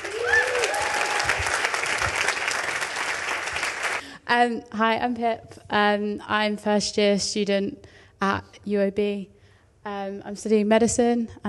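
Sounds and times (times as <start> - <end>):
audience applause: 0.0 - 4.0
speech: 4.3 - 11.4.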